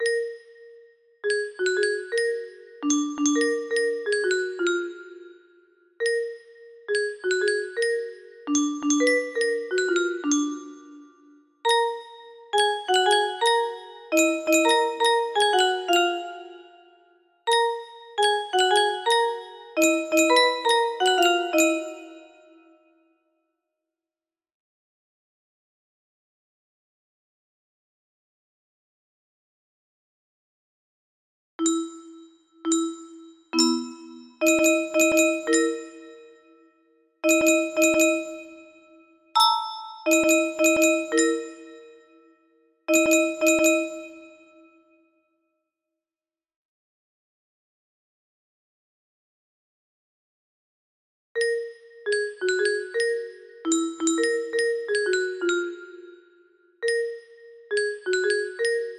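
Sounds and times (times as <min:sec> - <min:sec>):
music box melody: 0:00.0 - 0:22.7, 0:31.6 - 0:36.6, 0:37.2 - 0:42.2, 0:42.9 - 0:44.6, 0:51.4 - 0:58.9.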